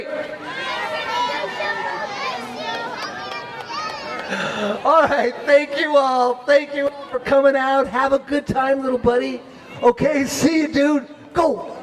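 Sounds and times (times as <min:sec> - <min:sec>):
crowd of children yelling their first names together: 0:00.4 - 0:04.9
speech: 0:04.3 - 0:11.7.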